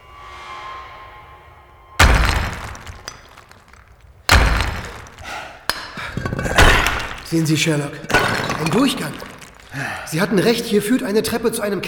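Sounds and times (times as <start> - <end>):
heavy object smashing through a plastered wall: 2.0 - 5.3, 6.0 - 9.8
speech: 7.3 - 11.8.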